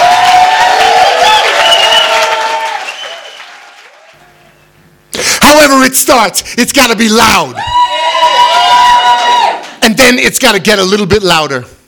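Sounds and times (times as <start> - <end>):
audience applause: 0.0 - 4.4, 7.8 - 9.8
speech: 5.8 - 7.7, 9.8 - 11.8.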